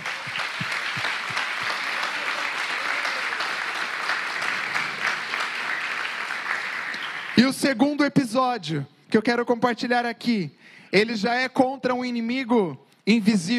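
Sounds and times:
audience applause: 0.0 - 7.6
speech: 7.5 - 13.5.

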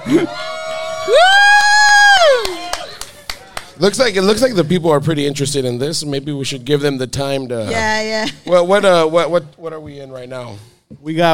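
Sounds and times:
crowd cheering: 0.0 - 4.5
speech: 0.1 - 1.4, 3.8 - 11.3.

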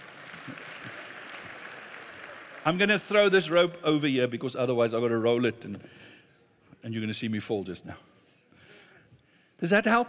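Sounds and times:
audience round of applause: 0.0 - 4.2
speech: 2.6 - 6.1, 6.8 - 8.1, 9.6 - 10.0.

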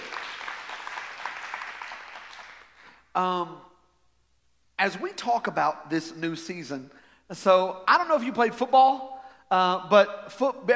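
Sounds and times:
audience hand clapping: 0.0 - 2.9
speech: 3.2 - 3.7, 4.8 - 10.7.

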